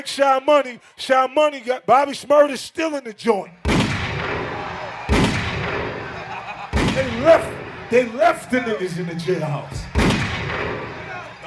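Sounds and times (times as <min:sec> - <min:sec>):
speech: 0:00.0 - 0:03.6, 0:07.0 - 0:10.1
gunshot sound effects played by DJ: 0:03.6 - 0:07.5, 0:09.9 - 0:11.1
laughter: 0:05.8 - 0:09.6.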